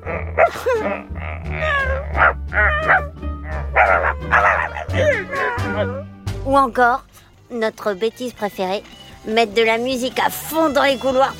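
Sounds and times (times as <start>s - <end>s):
person imitating a dog with yappy barks and whiny yelps: 0.0s - 6.0s
speech: 0.4s - 1.7s, 6.6s - 11.3s.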